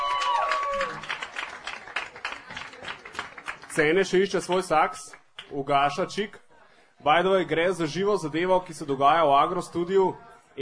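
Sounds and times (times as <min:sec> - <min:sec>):
audience clapping: 0:00.0 - 0:05.6
speech: 0:03.8 - 0:06.4, 0:07.0 - 0:10.5.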